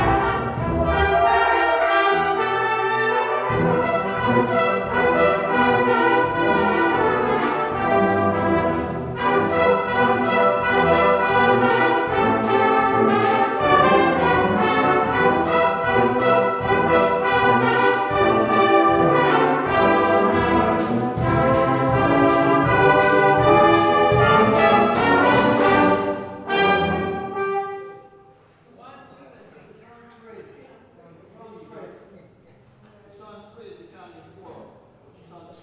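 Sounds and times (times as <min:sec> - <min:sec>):
brass instruments: 0:00.0 - 0:28.4.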